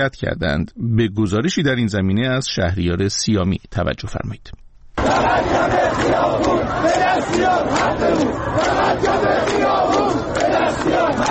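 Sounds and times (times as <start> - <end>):
speech: 0.0 - 11.2
crowd of protesters chanting and shouting: 5.0 - 11.2.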